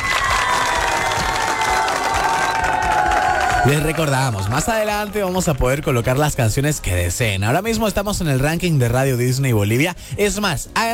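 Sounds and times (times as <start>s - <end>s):
audience applause for a couple: 0.0s - 6.8s
speech: 3.6s - 10.9s.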